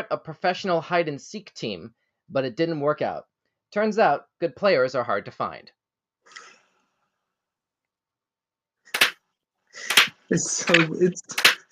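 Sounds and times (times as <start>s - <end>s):
speech: 0.0s - 6.5s, 9.8s - 11.5s
slow clap: 9.0s - 9.2s, 9.8s - 11.7s.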